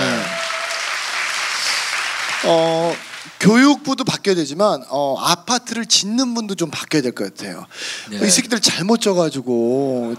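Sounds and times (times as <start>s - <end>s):
audience applause: 0.0s - 3.4s
speech: 2.4s - 10.1s.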